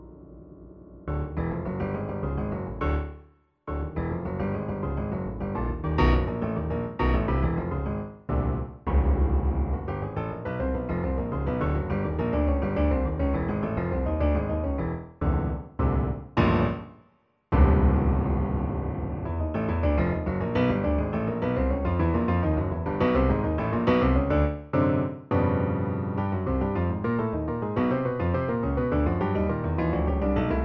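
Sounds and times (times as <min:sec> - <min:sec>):
piano sonata: 0:00.0 - 0:30.6.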